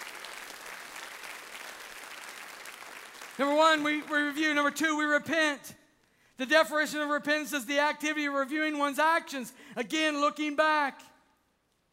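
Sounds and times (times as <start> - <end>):
congregation clapping in praise during a church service: 0.0 - 4.8
speech: 3.4 - 5.8, 6.4 - 11.1.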